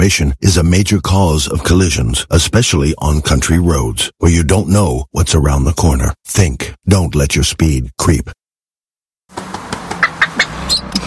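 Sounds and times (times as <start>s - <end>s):
speech: 0.0s - 8.4s
animal calls in a road safety advert: 9.9s - 11.0s.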